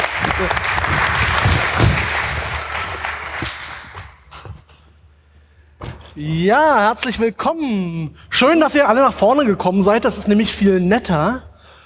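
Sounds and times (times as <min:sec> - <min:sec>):
audience applause: 0:00.0 - 0:04.2
speech: 0:00.4 - 0:01.0, 0:06.2 - 0:11.5.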